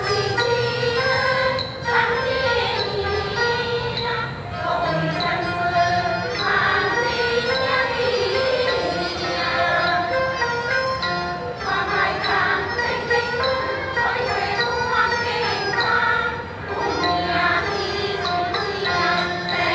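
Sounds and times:
Cantonese traditional music played live outdoors in Singapore: 0.0 - 19.7.

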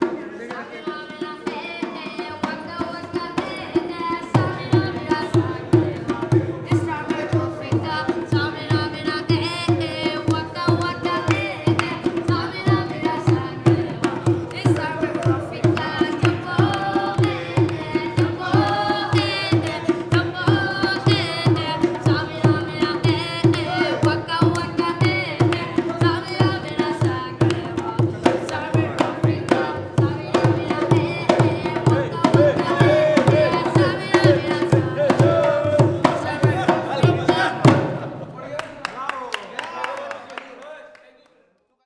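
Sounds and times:
little boy playing drums at Amer Fort Jaipur: 0.0 - 38.4.

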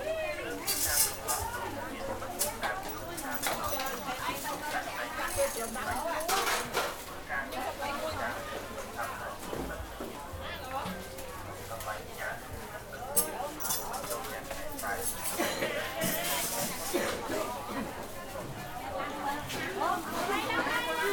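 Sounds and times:
people at a market in Phnom Penh Cambodia: 0.0 - 21.1.

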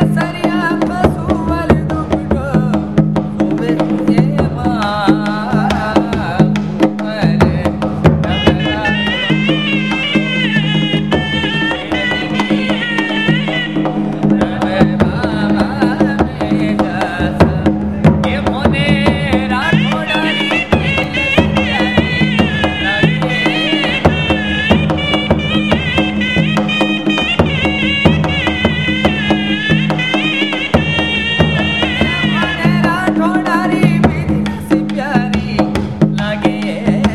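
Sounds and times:
drum playing in a fort: 0.0 - 37.1
shehnai playing in a fort: 8.3 - 14.6, 19.8 - 33.2.

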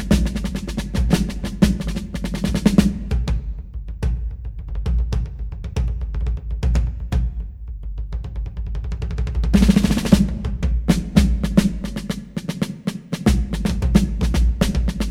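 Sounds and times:
fife and drum corps drum feature: 0.0 - 15.0.

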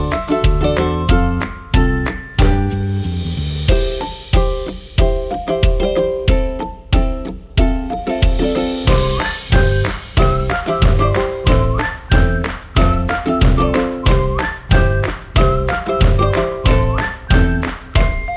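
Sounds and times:
whistling: 0.0 - 3.0, 8.9 - 18.3
ukulele: 0.0 - 18.3.

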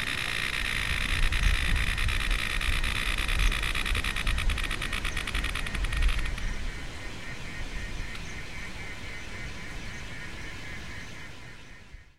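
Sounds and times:
radio banjo locust in India: 0.0 - 6.4.

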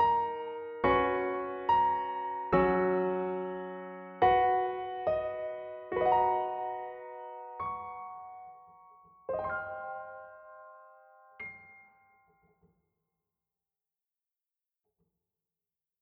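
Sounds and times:
piano music: 0.0 - 12.4.

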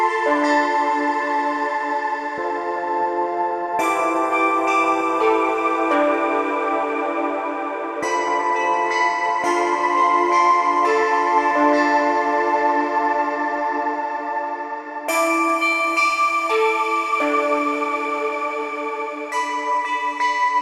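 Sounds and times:
ambient bells with movement: 0.0 - 20.6.

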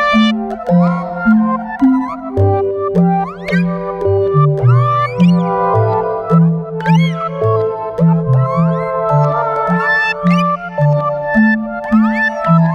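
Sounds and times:
waltz music: 0.1 - 12.7.

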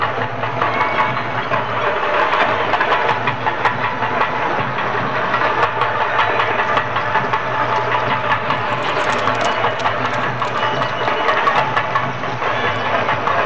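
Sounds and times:
drums in India or Nepal: 0.0 - 13.4
birds in India or Nepal: 8.1 - 11.8.

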